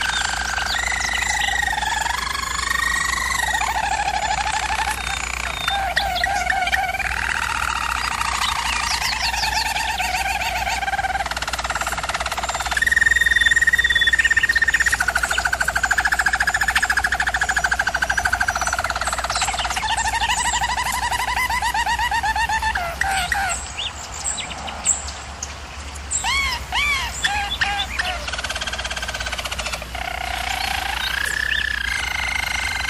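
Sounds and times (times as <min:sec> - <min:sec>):
German Roller canary rolling trill song: 0:00.0 - 0:23.6, 0:26.3 - 0:32.8.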